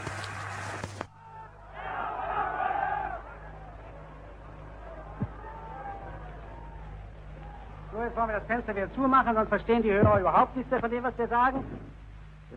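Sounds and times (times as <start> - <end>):
street crowd at a torchlight procession roaring and cheering: 0.0 - 8.0
low continuous hum: 0.0 - 12.5
murmur of many voices: 1.1 - 10.6
speech: 8.0 - 12.5.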